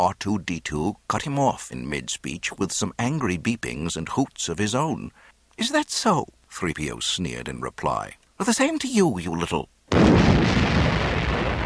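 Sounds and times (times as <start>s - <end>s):
speech: 0.0s - 10.7s
violent explosion: 9.9s - 11.6s.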